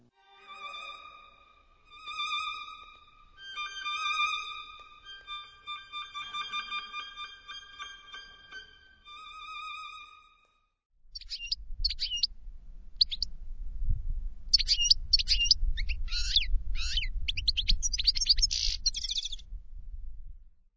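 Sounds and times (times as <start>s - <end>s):
orchestral music imitating goldfinch song: 0.0s - 10.3s, 11.2s - 12.3s, 12.9s - 13.3s, 14.5s - 19.4s
steady low rumble: 11.2s - 20.6s.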